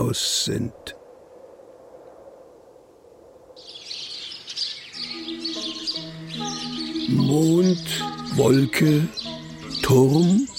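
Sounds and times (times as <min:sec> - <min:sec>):
speech: 0:00.0 - 0:01.0, 0:07.1 - 0:09.2, 0:09.9 - 0:10.5
chorus of birds on wires chirping: 0:03.6 - 0:10.5
sustained musical tones: 0:04.9 - 0:10.5.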